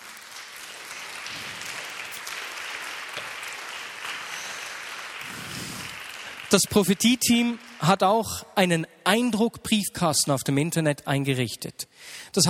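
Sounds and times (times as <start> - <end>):
audience applause: 0.0 - 8.2
speech: 6.5 - 12.4.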